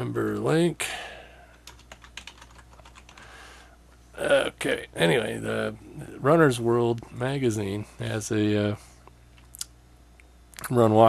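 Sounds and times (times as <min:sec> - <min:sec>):
speech: 0:00.1 - 0:01.0, 0:04.2 - 0:08.9, 0:10.7 - 0:11.0
typing on a computer keyboard: 0:01.5 - 0:03.3.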